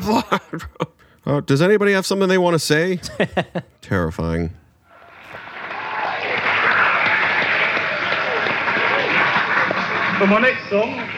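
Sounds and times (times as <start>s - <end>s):
laughter: 0.0s - 1.0s, 3.0s - 3.8s, 5.0s - 11.1s
speech: 0.0s - 4.6s, 10.2s - 11.1s
audience round of applause: 4.9s - 11.1s.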